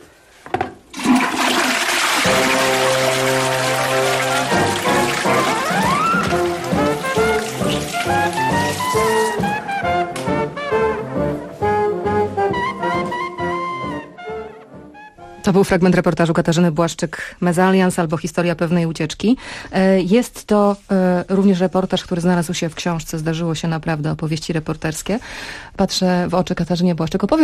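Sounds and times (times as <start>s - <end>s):
toilet flushing: 0.9s - 9.6s
tonal music: 2.2s - 15.6s
speech: 15.5s - 27.4s.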